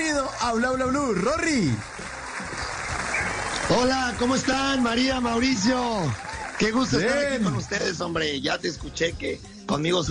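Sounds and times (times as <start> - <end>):
audience applause welcoming a guest: 0.0 - 7.7
speech: 0.4 - 2.0, 3.7 - 10.1.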